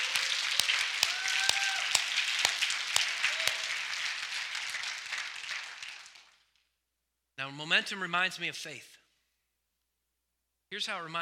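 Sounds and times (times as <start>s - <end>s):
faint raised voices and cheers: 0.0s - 3.9s
audience clapping hands: 0.0s - 6.7s
speech: 7.4s - 8.9s, 10.7s - 11.2s.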